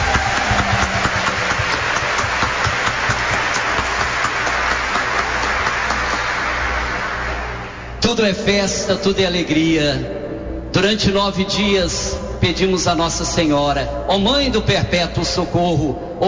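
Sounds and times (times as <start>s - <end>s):
audience applause: 0.0s - 7.9s
low hum: 0.0s - 16.2s
speech: 8.2s - 10.2s, 10.8s - 16.2s.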